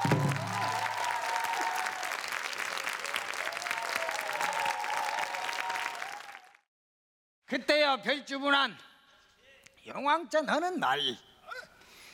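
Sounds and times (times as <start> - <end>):
audience applause: 0.0 - 6.7
speech: 7.6 - 8.9, 9.8 - 11.3.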